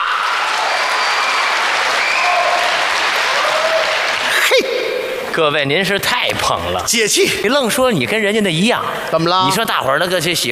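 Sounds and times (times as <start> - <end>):
audience applause: 0.1 - 5.3
speech: 5.4 - 10.5.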